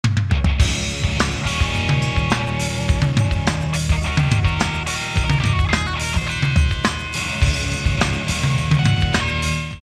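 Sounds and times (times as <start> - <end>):
hard rock music: 0.0 - 9.8.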